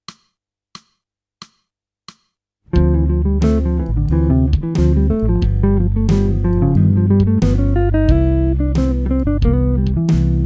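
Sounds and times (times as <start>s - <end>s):
jazz music: 2.8s - 10.4s.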